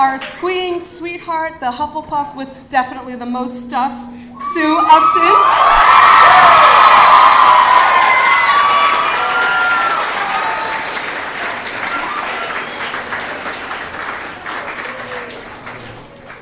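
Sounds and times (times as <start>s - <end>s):
speech: 0.0s - 6.7s
audience applause: 5.2s - 16.4s.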